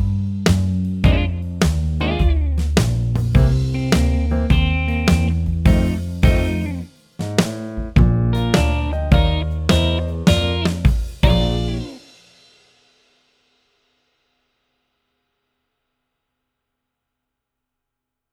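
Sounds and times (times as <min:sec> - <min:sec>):
blues jazz backing track: 0:00.0 - 0:12.2.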